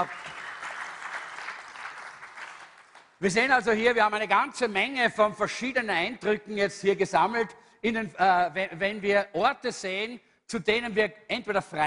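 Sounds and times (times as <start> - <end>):
speech: 0.0 - 0.2, 3.2 - 11.8
audience applause: 0.0 - 3.2.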